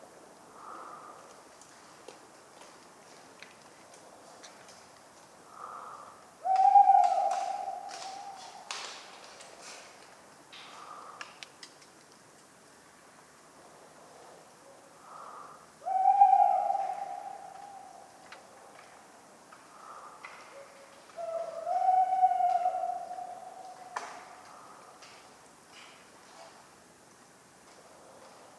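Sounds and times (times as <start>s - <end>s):
tawny owl hoot: 5.5s - 8.7s, 15.1s - 18.4s, 19.7s - 24.8s.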